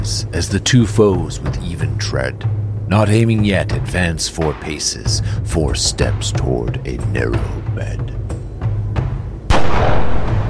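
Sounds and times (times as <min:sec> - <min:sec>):
speech: 0:00.0 - 0:08.2
pistol shot in a snowy duel: 0:09.5 - 0:10.4.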